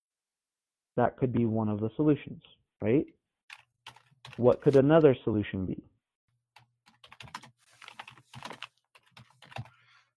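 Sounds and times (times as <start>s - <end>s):
speech: 1.0s - 3.2s, 4.4s - 5.9s
computer keyboard typing: 3.5s - 5.0s, 6.6s - 9.8s.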